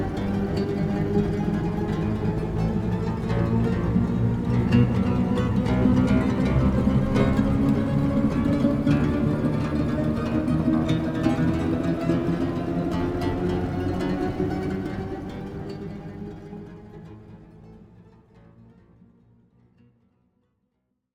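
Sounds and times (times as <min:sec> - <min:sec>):
plucked Shepard tone: 0:00.0 - 0:14.2.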